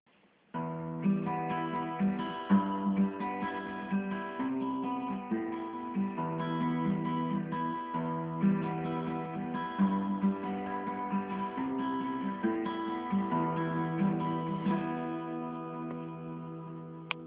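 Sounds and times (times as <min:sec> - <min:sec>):
guitar playing: 0:00.5 - 0:17.2.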